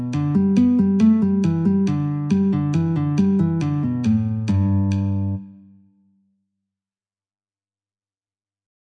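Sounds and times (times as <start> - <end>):
metronome at 69: 0.0 - 5.6
G guitar: 0.0 - 6.0.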